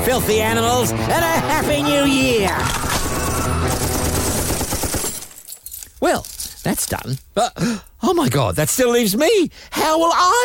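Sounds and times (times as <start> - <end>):
continuous roar: 0.0 - 5.1
speech: 0.1 - 4.0, 6.0 - 10.4
rifle gunshots: 2.7 - 5.4.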